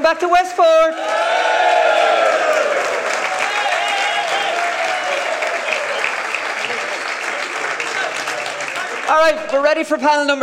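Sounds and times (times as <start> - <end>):
speech: 0.1 - 1.2, 9.1 - 10.4
live audience applause in Westport: 1.0 - 10.0
crowd murmur: 4.5 - 9.1.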